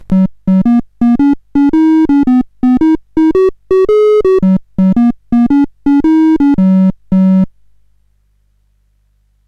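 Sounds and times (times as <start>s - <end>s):
CSG8580R5 sound chip game music: 0.1s - 7.5s.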